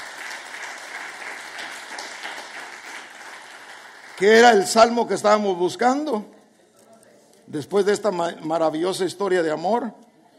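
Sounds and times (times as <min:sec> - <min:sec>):
applause: 0:00.0 - 0:05.2
speech: 0:04.2 - 0:06.4, 0:07.5 - 0:10.0.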